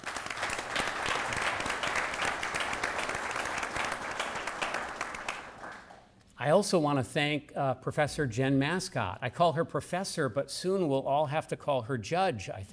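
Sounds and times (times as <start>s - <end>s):
round of applause: 0.0s - 6.1s
speech: 6.4s - 12.7s.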